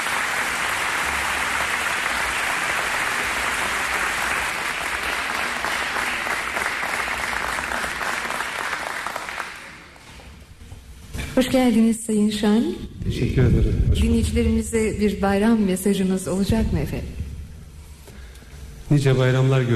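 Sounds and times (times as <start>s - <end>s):
audience applauding to welcome a performer at a holiday program: 0.0s - 10.0s
speech: 11.4s - 17.2s, 18.9s - 19.7s.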